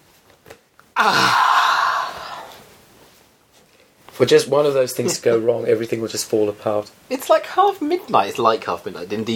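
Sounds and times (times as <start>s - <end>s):
speech: 1.0s - 1.4s, 4.2s - 9.3s
person yawning: 1.0s - 2.6s.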